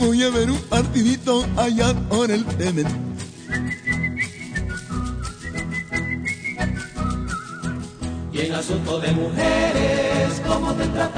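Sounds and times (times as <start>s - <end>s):
rhythmic musical backing: 0.0s - 11.1s
speech: 0.2s - 3.9s, 8.4s - 11.1s
person whistling a bright lilting melody: 3.3s - 8.1s.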